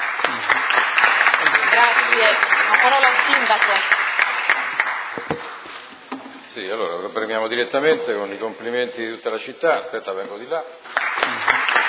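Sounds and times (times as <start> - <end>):
audience applause: 0.0 - 5.6, 10.9 - 11.8
speech: 1.8 - 4.0, 6.6 - 11.7.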